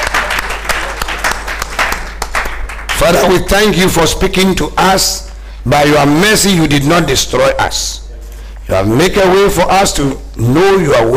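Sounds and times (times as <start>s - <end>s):
church congregation clapping after a sermon: 0.0s - 3.8s
speech: 3.1s - 8.0s, 8.7s - 11.1s.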